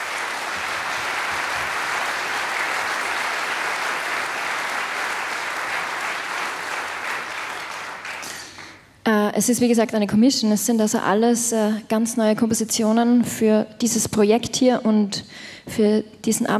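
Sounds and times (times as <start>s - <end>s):
audience applause: 0.0s - 8.8s
speech: 9.4s - 16.5s.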